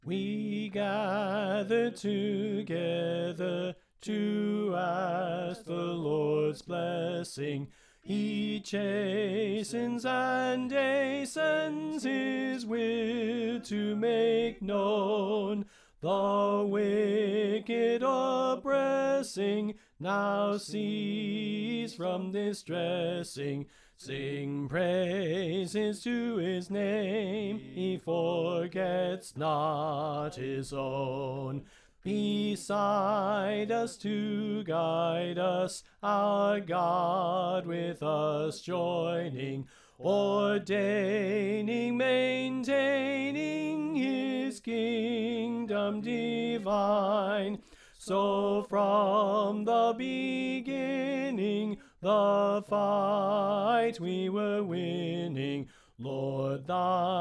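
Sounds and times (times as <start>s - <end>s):
soprano singing a hymn: 0.0s - 57.2s.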